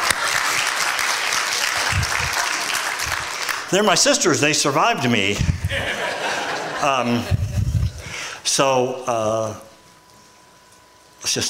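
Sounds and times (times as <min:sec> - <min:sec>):
audience applause: 0:00.0 - 0:03.7
laughter: 0:01.6 - 0:03.3, 0:05.4 - 0:08.0
speech: 0:03.7 - 0:06.1, 0:06.8 - 0:07.4, 0:08.5 - 0:09.7, 0:11.2 - 0:11.4.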